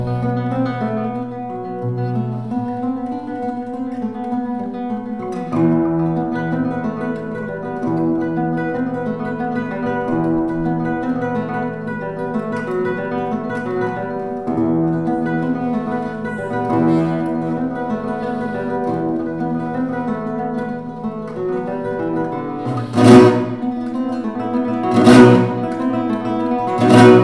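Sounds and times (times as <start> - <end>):
guitar in a church: 0.0 - 27.2.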